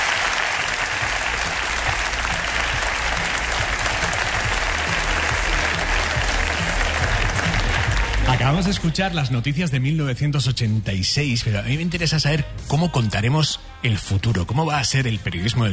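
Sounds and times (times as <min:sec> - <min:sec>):
audience applause: 0:00.0 - 0:08.8
speech: 0:08.4 - 0:15.7.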